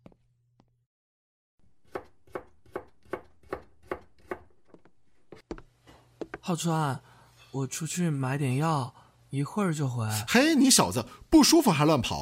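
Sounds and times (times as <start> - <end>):
knife chopping on a board: 1.8 - 5.6
speech: 6.5 - 12.2.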